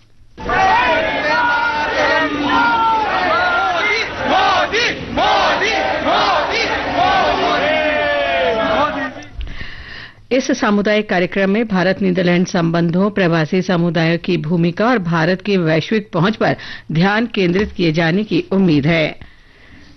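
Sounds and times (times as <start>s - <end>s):
crowd chanting political slogans: 0.4s - 9.3s
speech: 10.3s - 19.3s.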